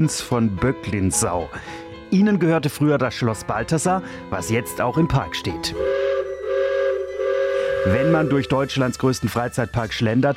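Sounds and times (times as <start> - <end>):
speech: 0.0 - 6.0, 7.8 - 10.3
steam locomotive whistle: 5.8 - 9.0.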